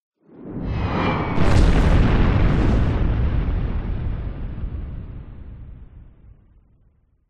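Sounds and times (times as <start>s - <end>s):
missile explosion: 0.4s - 7.2s
incoming missile whizzing by: 0.7s - 4.3s.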